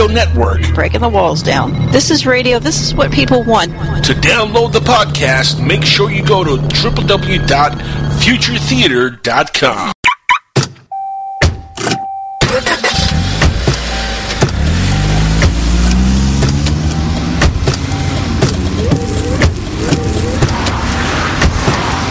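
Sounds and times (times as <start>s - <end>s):
car driving: 0.0s - 9.0s, 12.4s - 22.0s
speech: 0.1s - 10.0s.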